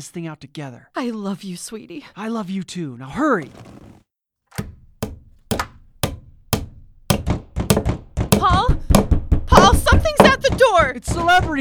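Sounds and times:
speech: 0:00.0 - 0:03.8, 0:10.7 - 0:11.5
hammering boards over windows: 0:03.4 - 0:11.5.

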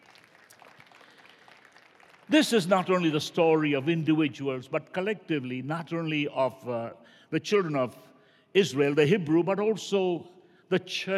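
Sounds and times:
audience clapping: 0:00.0 - 0:03.1
speech: 0:02.3 - 0:11.1.

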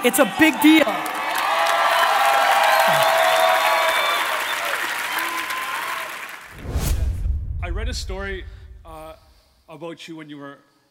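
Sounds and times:
speech: 0:00.0 - 0:01.2, 0:07.9 - 0:08.6, 0:09.7 - 0:10.7
audience applause: 0:00.0 - 0:06.6
low rumble: 0:06.5 - 0:09.6.

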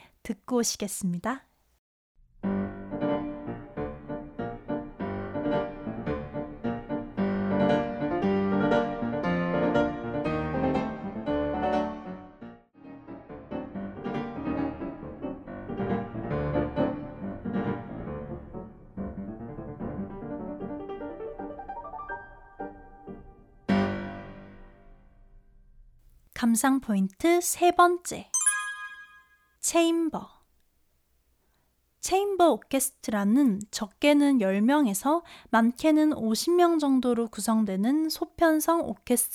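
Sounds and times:
speech: 0:00.3 - 0:01.5, 0:26.5 - 0:28.3, 0:29.7 - 0:30.4, 0:32.0 - 0:39.3
old historical recording of solo piano prelude: 0:02.4 - 0:25.1.

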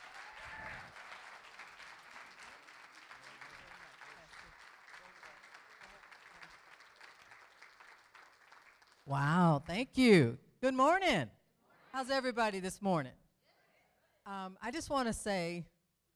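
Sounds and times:
audience applause: 0:00.0 - 0:09.1
speech: 0:09.1 - 0:13.2, 0:14.3 - 0:15.7.

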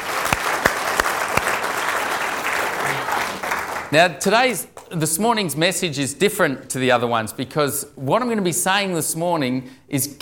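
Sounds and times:
audience applause: 0:00.0 - 0:04.0
speech: 0:03.9 - 0:10.1.

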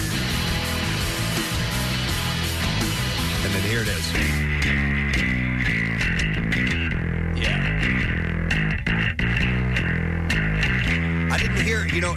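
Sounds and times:
isolated bass guitar track with slight distortion: 0:00.0 - 0:12.1
speech: 0:03.6 - 0:04.9.

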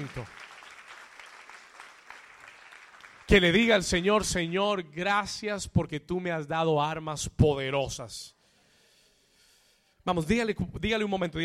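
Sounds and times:
speech: 0:00.0 - 0:00.4, 0:03.3 - 0:08.4, 0:10.0 - 0:11.4
audience clapping: 0:00.0 - 0:04.3.

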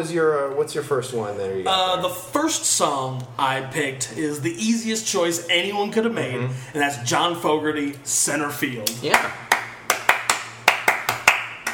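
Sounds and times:
speech: 0:00.0 - 0:09.5
hands clapping a song rhythm: 0:08.8 - 0:11.7.

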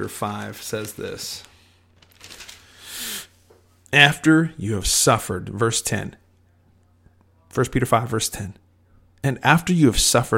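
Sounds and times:
speech: 0:00.0 - 0:01.5, 0:03.9 - 0:06.2, 0:07.5 - 0:08.6, 0:09.2 - 0:10.3
thin paper pages of a Bible being flipped: 0:00.3 - 0:02.8.

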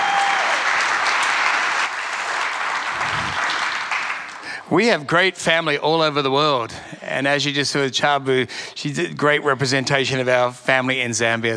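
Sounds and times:
audience applause for a guest from Zambia: 0:00.0 - 0:04.6
speech: 0:04.7 - 0:11.5.

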